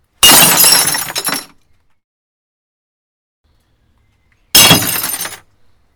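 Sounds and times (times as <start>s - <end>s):
broken wine glass: 0.2s - 1.5s, 4.6s - 5.4s.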